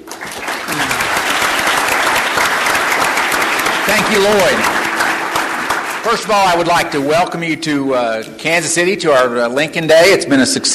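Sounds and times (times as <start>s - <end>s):
applause welcoming Missouri Republican Party chairman David Cole at a Lincoln Day event in Kansas City: 0.0s - 8.1s
speech: 4.1s - 4.8s, 6.0s - 10.7s.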